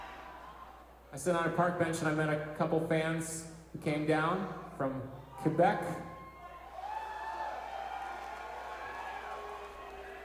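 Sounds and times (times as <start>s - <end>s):
crowd booing: 0.0s - 1.0s, 5.2s - 10.2s
speech: 1.1s - 6.1s.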